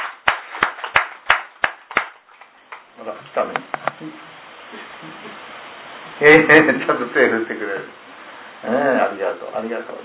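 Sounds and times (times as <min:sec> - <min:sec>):
clapping in unison at a birthday gathering: 0:00.0 - 0:02.9
speech: 0:03.0 - 0:08.0, 0:08.6 - 0:10.0.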